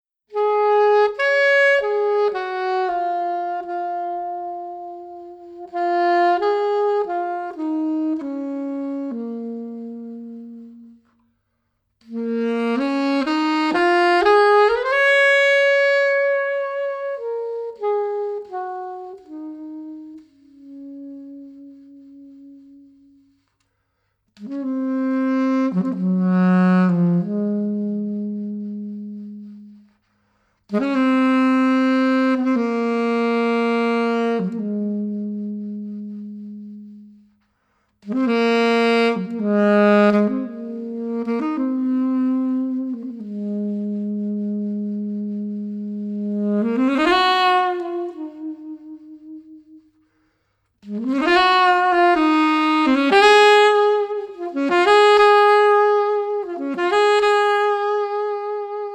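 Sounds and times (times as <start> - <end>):
saxophone introduction: 0.3 - 11.1, 12.0 - 23.6, 24.4 - 30.0, 30.7 - 37.4, 38.0 - 50.1, 50.8 - 58.9.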